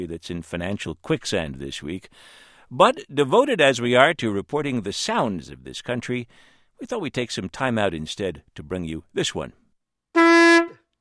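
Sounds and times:
speech: 0.0 - 9.6
conch shell blown by a conch honker: 10.2 - 10.8.

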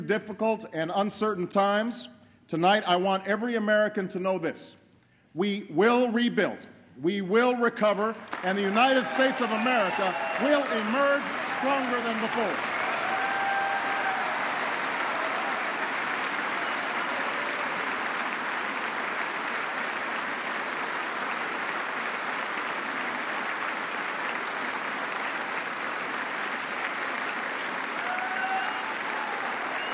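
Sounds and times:
speech: 0.1 - 12.7
applause from lawmakers at a speech: 8.1 - 29.9
faint cheers: 8.6 - 18.0, 27.9 - 29.9.

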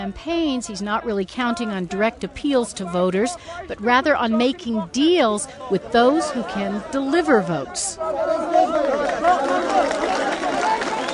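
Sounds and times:
speech: 0.0 - 10.1
Ismaili followers excitedly greeting their religious leader: 8.0 - 11.1.

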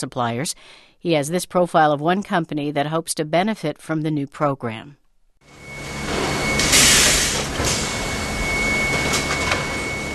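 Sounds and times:
speech: 0.0 - 5.6
auto parts factory machinery in Royal Oak, Michigan: 5.5 - 10.1.

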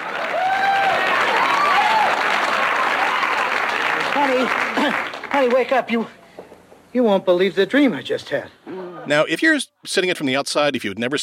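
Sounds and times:
studio audience applause: 0.0 - 5.8
speech: 4.3 - 6.2, 6.9 - 11.2.

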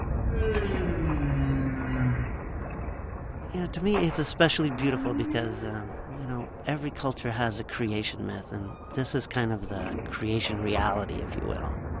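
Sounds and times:
volcano sounds: 0.2 - 2.7, 3.5 - 11.8
whale calls: 0.3 - 2.5, 4.1 - 6.6
speech: 3.7 - 6.1, 6.7 - 11.9.

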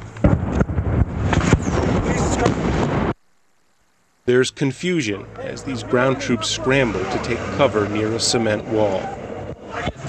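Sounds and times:
rocket-propelled grenade whizzing overhead during a firefight: 0.2 - 3.2
speech: 4.3 - 9.9.

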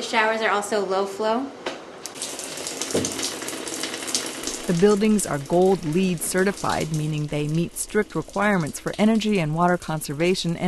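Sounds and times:
speech: 0.1 - 1.6, 4.7 - 10.6
low-flow toilet half flush: 2.1 - 10.6.

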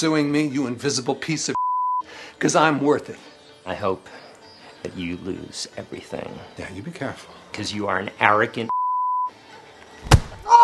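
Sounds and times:
speech: 0.0 - 4.2, 4.8 - 8.7
punch sound effect of a character hit hard in the face: 10.0 - 10.5.

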